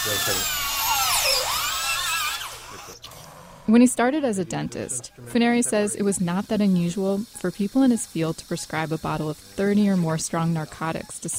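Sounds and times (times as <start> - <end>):
dental drill on impacted wisdom tooth: 0.0 - 11.3
speech: 0.1 - 0.7, 3.7 - 11.3.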